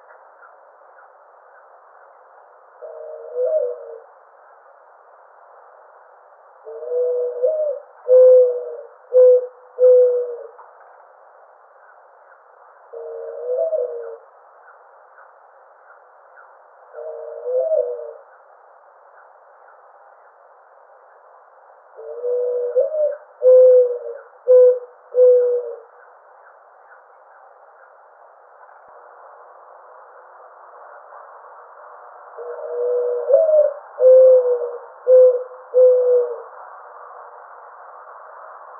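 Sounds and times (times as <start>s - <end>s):
birds: 0.0s - 4.9s, 6.6s - 36.6s
Mourning Dove: 0.0s - 38.7s.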